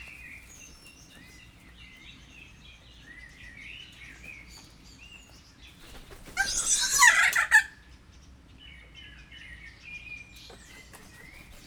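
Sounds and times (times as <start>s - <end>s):
captive kea screeching in a zoo in Jászberény: 6.3s - 7.6s.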